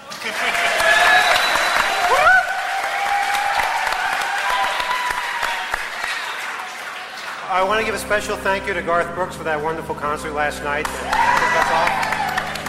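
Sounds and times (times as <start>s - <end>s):
audience applause: 0.0s - 8.3s, 10.8s - 12.6s
speech: 0.2s - 0.6s, 7.6s - 12.1s.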